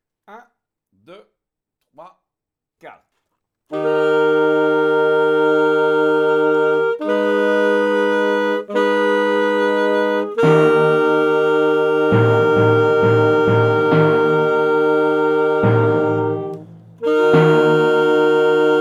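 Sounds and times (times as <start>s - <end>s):
saxophone march: 3.7s - 18.7s.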